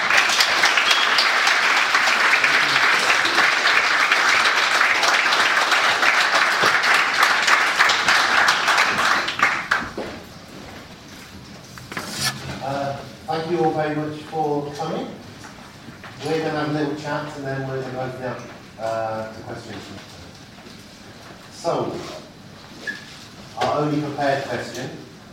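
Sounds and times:
crowd applauding: 0.0s - 10.0s
speech: 13.8s - 15.2s, 16.2s - 20.1s, 21.6s - 22.2s, 23.8s - 25.0s.

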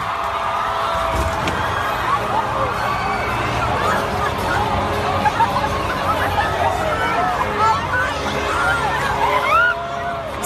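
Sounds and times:
large crowd shouting and clamoring: 0.0s - 10.4s
low thump of a toppling barricade: 1.1s - 2.0s
laughter: 1.1s - 10.1s.

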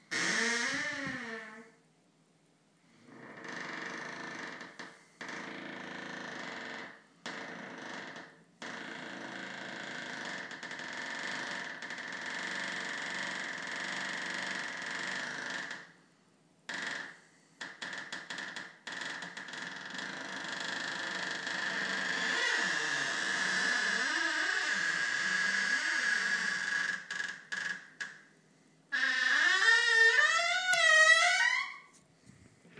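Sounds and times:
creaky door: 0.1s - 1.7s, 3.1s - 15.9s, 16.7s - 28.3s, 28.9s - 32.0s.

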